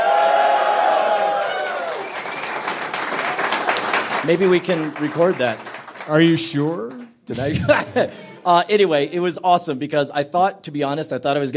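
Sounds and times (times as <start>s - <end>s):
live audience cheering: 0.0s - 7.1s
speech: 4.2s - 11.5s
laughter: 7.3s - 9.3s.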